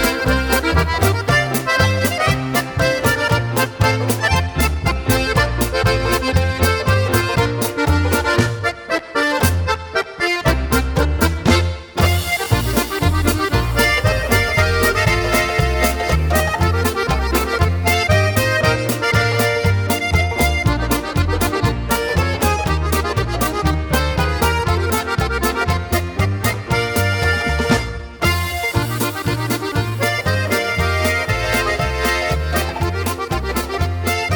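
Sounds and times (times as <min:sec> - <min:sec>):
polka music: 0:00.0 - 0:34.3.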